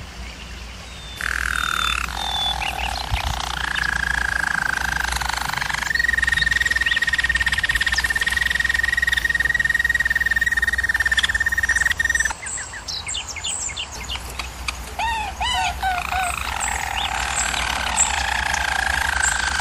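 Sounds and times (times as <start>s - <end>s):
German Roller canary trilling: 1.2s - 12.3s, 15.0s - 19.5s.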